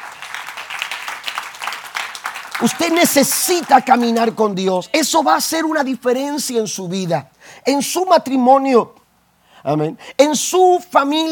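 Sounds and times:
audience applause: 0.0s - 4.4s
speech: 2.6s - 9.0s, 9.6s - 11.3s.

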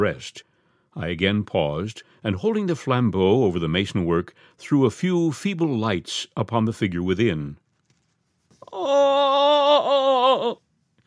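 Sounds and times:
speech: 0.0s - 7.6s, 8.6s - 10.6s
loud shrill human scream: 8.6s - 10.6s.

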